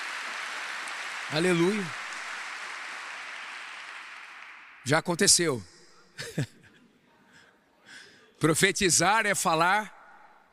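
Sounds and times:
audience applause: 0.0s - 4.9s
speech: 1.3s - 2.0s, 4.8s - 6.6s, 8.4s - 10.0s
laughter: 6.2s - 6.8s.

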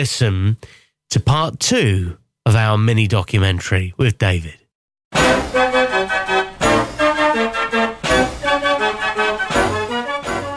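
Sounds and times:
speech: 0.0s - 5.8s
mechanical organ playing from a programmed punch card: 5.2s - 10.5s.

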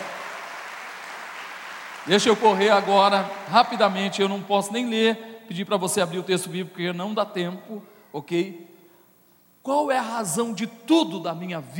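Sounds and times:
audience applause: 0.0s - 4.2s
speech: 2.0s - 8.7s, 9.6s - 11.7s.

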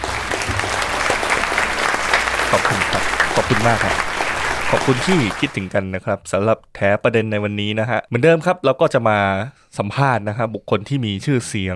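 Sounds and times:
crowd applause: 0.0s - 5.7s
speech: 2.5s - 4.1s, 4.7s - 11.7s.

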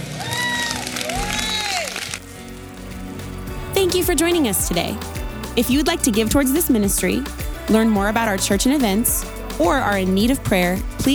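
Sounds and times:
whoops: 0.0s - 2.2s
audience clapping and cheering: 0.0s - 11.1s
speech: 4.0s - 11.1s.

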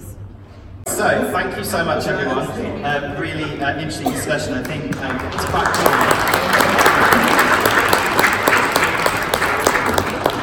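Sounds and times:
speech: 1.0s - 6.3s
audience applause: 4.6s - 10.4s.

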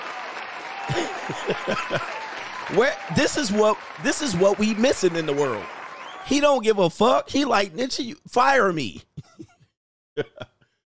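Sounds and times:
scattered applause from a small crowd: 0.0s - 7.7s
steady noisy background: 0.7s - 10.8s
laughter: 0.8s - 5.4s, 9.0s - 9.6s
speech: 0.9s - 9.1s, 10.2s - 10.5s.

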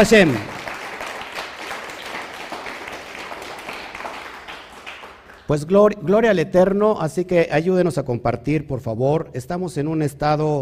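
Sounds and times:
speech: 0.0s - 0.5s, 5.5s - 10.6s
crowd applause: 0.0s - 5.5s.

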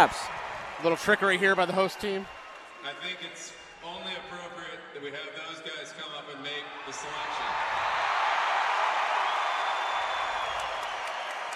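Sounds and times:
arena crowd booing: 0.0s - 3.8s, 6.6s - 11.5s
speech: 0.0s - 7.7s.

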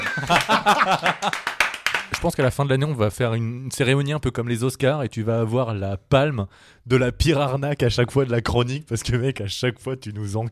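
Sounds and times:
laughter: 0.0s - 1.6s
one person clapping hands alone: 0.0s - 2.5s
speech: 0.2s - 1.5s, 2.2s - 10.5s.

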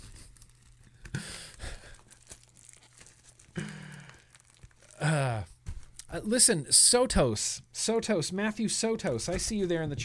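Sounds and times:
plastic UPS mailing bag crinkling: 0.0s - 5.1s
plastic UPS mailing bag ripping: 0.0s - 5.1s
speech: 5.0s - 5.5s, 6.2s - 10.0s.

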